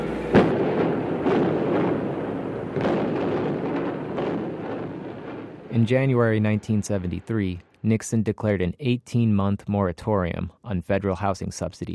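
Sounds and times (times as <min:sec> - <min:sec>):
demolition explosion of high-rise supporting columns: 0:00.0 - 0:07.5
speech: 0:05.8 - 0:11.9.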